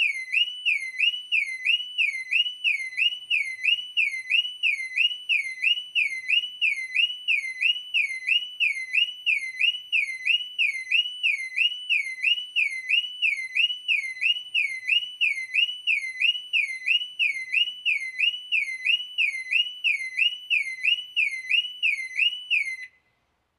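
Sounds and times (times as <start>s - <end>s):
car alarm: 0.0s - 23.1s.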